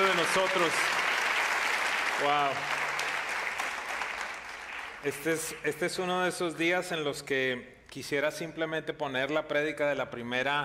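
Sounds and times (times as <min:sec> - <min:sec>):
audience applauding: 0:00.0 - 0:05.6
speech: 0:00.3 - 0:01.0, 0:02.2 - 0:02.8, 0:05.0 - 0:10.6.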